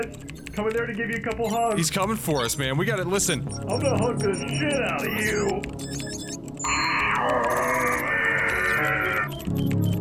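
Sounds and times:
speech: 0.0s - 6.0s
person screaming: 7.0s - 9.3s.

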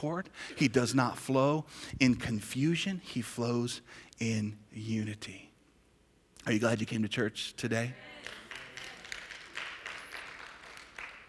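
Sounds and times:
speech: 0.0s - 5.5s, 6.4s - 8.4s
audience clapping: 8.1s - 11.2s.

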